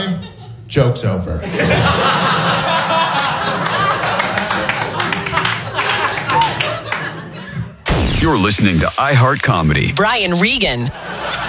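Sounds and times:
speech: 0:00.7 - 0:02.6, 0:08.2 - 0:11.1
laughter: 0:01.4 - 0:04.6
reluctant scattered audience clapping: 0:03.2 - 0:06.8.

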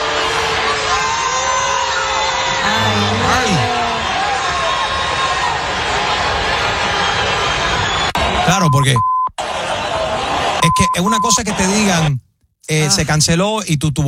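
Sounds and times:
crowd booing: 0:00.0 - 0:08.5, 0:09.4 - 0:10.6
speech: 0:08.5 - 0:09.1, 0:10.6 - 0:14.0.

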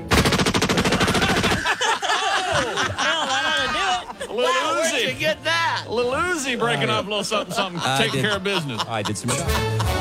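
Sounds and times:
video game gunfire: 0:00.0 - 0:01.6
voices talking and chuckling: 0:00.9 - 0:10.0
speech: 0:05.3 - 0:10.0.

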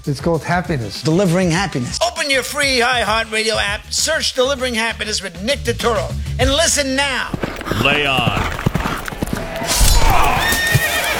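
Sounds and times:
speech: 0:00.0 - 0:08.7
horse hooves clopping: 0:06.4 - 0:11.1
horse whinnying: 0:07.3 - 0:11.1.

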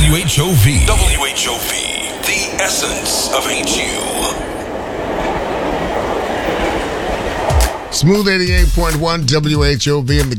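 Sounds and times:
speech: 0:00.3 - 0:04.6, 0:08.0 - 0:10.3
train pulling into a station: 0:01.2 - 0:08.4.

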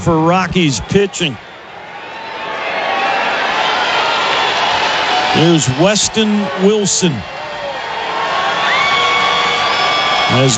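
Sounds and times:
speech: 0:00.0 - 0:01.5, 0:05.4 - 0:07.4, 0:10.3 - 0:10.5
large crowd cheering at a Colorado Rockies baseball game: 0:00.0 - 0:10.5.

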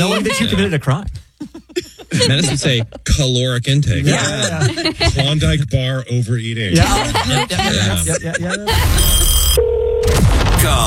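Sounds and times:
laughter: 0:00.0 - 0:05.6, 0:06.7 - 0:09.4
speech: 0:00.0 - 0:10.8
telephone ringing unanswered: 0:08.8 - 0:10.2.

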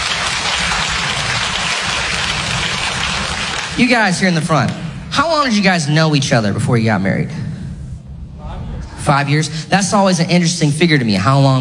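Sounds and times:
audience clapping: 0:00.0 - 0:04.8
speech: 0:03.8 - 0:07.5, 0:09.0 - 0:11.5.

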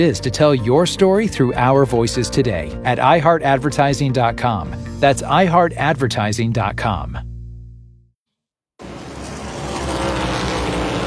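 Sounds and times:
speech: 0:00.0 - 0:07.3
race car engines roaring in the Cookout 400 at Richmond Raceway: 0:08.8 - 0:11.0.

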